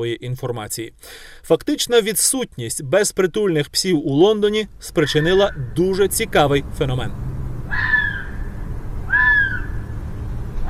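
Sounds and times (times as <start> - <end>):
speech: 0.0 - 7.8
London fox calling at night: 5.0 - 5.8, 7.7 - 9.9.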